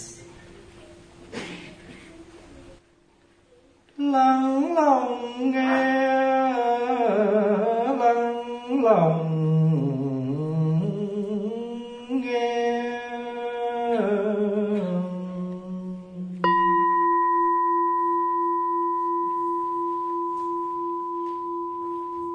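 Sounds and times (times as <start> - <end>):
person chanting a slow wavering melody: 4.0 - 20.0
speech: 4.1 - 6.2
mindfulness bell ringing: 16.4 - 22.3.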